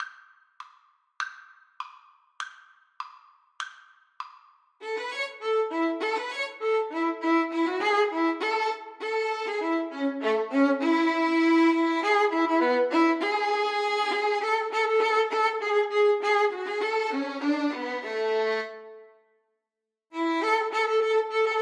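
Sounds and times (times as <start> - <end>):
violin duet: 4.8 - 19.1, 20.2 - 21.5.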